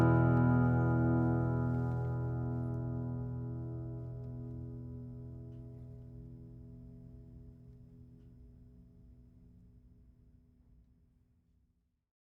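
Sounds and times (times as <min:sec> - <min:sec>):
steel-string flattop guitar of Indian rosewood and Adirondack spruce: 0:00.0 - 0:05.8.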